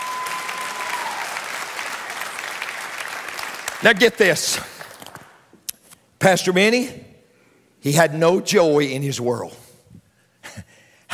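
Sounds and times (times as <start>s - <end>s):
audience clapping: 0.0s - 5.5s
speech: 3.8s - 4.7s, 6.2s - 7.0s, 7.8s - 9.6s.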